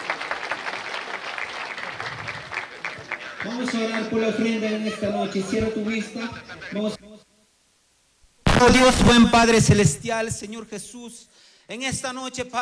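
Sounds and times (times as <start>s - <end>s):
audience applause: 0.0s - 4.5s
laughter: 1.7s - 6.9s
speech: 3.4s - 7.0s, 8.6s - 12.6s.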